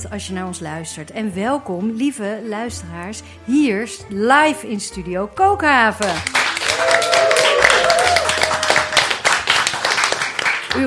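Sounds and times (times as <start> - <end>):
speech: 0.0 - 6.4
live studio audience clapping: 6.0 - 10.8.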